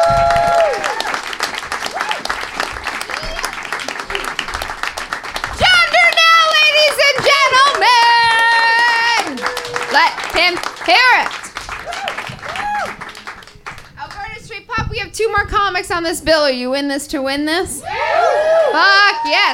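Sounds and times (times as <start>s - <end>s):
high-pitched whoops and cheers: 0.0s - 1.2s, 1.9s - 2.3s, 7.7s - 9.9s, 11.8s - 13.1s, 17.8s - 19.5s
audience clapping: 0.0s - 14.4s
speech: 15.9s - 17.9s, 18.7s - 19.5s.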